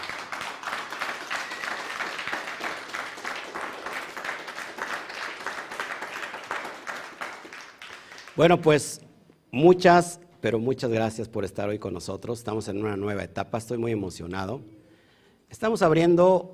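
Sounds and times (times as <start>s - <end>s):
crowd applause: 0.0s - 8.6s
speech: 8.4s - 14.8s, 15.5s - 16.5s.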